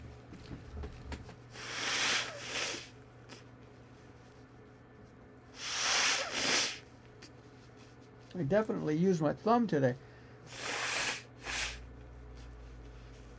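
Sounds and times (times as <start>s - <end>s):
quiet hum: 0.0s - 13.3s
person blowing their nose: 1.5s - 3.4s, 5.5s - 6.9s, 10.5s - 11.9s
speech: 8.4s - 10.1s.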